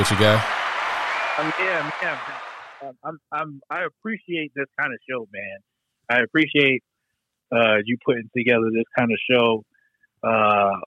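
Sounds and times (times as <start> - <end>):
speech: 0.0 - 0.6, 1.4 - 6.9, 7.5 - 10.8
audience applause: 0.0 - 2.8.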